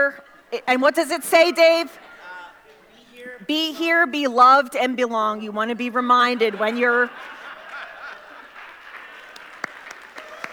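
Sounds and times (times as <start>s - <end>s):
speech: 0.0s - 2.1s, 3.4s - 7.4s
laughter: 0.0s - 4.0s, 5.9s - 10.5s
audience applause: 7.2s - 10.5s.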